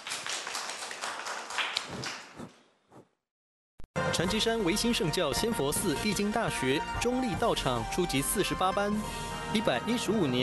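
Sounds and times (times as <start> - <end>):
audience applause: 0.0 - 2.4
speech: 4.2 - 10.4.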